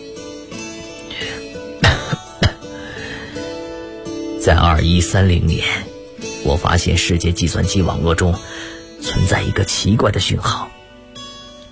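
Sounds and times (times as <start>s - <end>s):
person coughing: 1.3s - 3.0s
speech: 4.4s - 10.7s.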